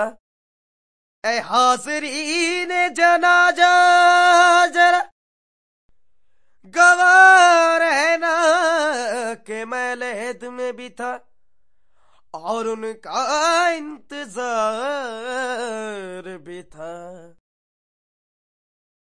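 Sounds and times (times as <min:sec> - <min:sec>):
Indian singing: 0:00.0 - 0:00.2, 0:01.2 - 0:05.1, 0:06.6 - 0:11.2, 0:12.4 - 0:17.4.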